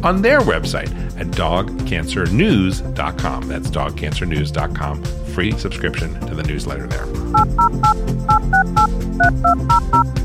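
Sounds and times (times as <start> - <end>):
speech: 0.0 - 10.2
telephone touch tones dialing: 7.4 - 10.1.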